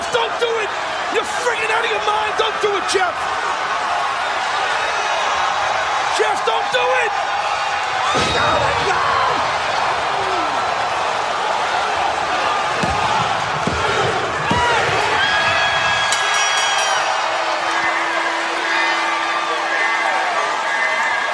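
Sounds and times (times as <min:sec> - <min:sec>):
wrestling crowd cheering wildly: 0:00.0 - 0:21.3
shrill whistle-like tones: 0:16.0 - 0:21.3.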